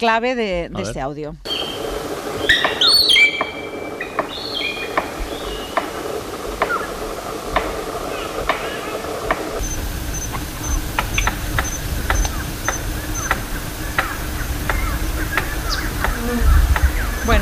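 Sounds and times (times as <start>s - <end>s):
speech: 0.0s - 1.5s
hiss: 0.0s - 17.4s
shrill bird calls: 1.5s - 5.9s, 9.6s - 17.4s
palm cockatoo drumming a stick against its nest: 1.5s - 6.9s, 7.5s - 17.4s.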